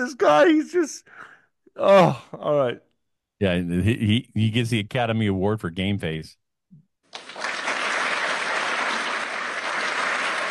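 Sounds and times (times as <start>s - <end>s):
speech: 0.0s - 6.4s
thunderous applause: 7.2s - 10.5s.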